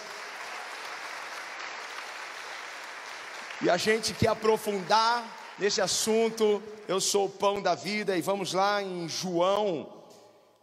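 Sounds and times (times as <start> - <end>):
audience applause: 0.0 - 6.6
speech: 3.6 - 10.0.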